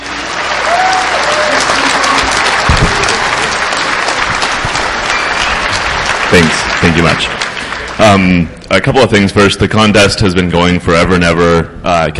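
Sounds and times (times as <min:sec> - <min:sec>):
faint whistles and cheers: 0:00.0 - 0:04.0, 0:04.7 - 0:06.2
crowd applauding: 0:00.0 - 0:08.5
speech: 0:06.8 - 0:12.1.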